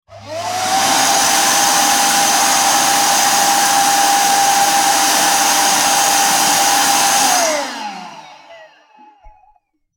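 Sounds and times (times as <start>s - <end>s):
vacuum cleaner: 0.0s - 9.6s.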